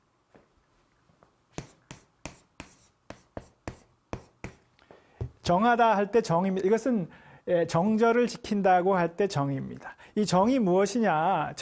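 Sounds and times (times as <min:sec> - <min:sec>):
person writing the Korean character 정 by hand: 0:01.5 - 0:04.7
speech: 0:05.5 - 0:11.5.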